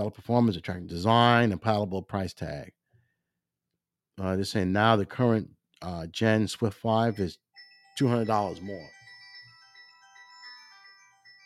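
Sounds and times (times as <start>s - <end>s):
speech: 0.0s - 2.8s, 4.2s - 7.4s, 8.0s - 9.0s
mobile phone ringing with bright electronic melodic ringtone: 7.0s - 11.4s.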